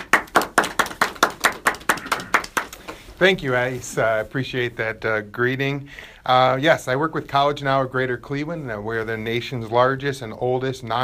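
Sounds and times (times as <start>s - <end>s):
hand clapping to welcome a speaker on stage: 0.0s - 3.1s
speech: 3.2s - 11.0s.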